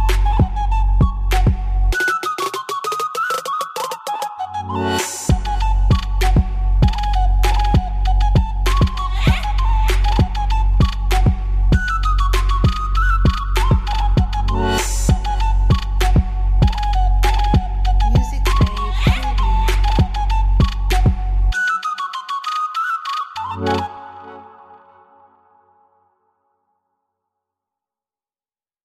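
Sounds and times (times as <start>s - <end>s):
Ukrainian vesnianka trap music: 0.0s - 22.6s.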